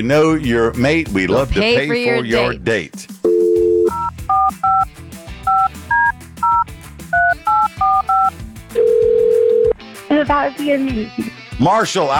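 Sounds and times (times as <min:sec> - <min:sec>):
speech: 0:00.0 - 0:03.2, 0:10.2 - 0:12.1
telephone dial tone: 0:03.3 - 0:04.8, 0:07.5 - 0:09.7
touch-tone keypress beeps: 0:05.5 - 0:06.6, 0:07.2 - 0:08.3.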